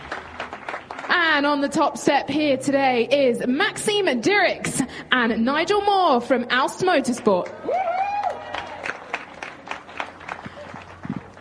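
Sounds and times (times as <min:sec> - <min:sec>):
audience applause for podium winners: 0:00.0 - 0:01.1, 0:07.6 - 0:11.4
speech: 0:01.4 - 0:07.8.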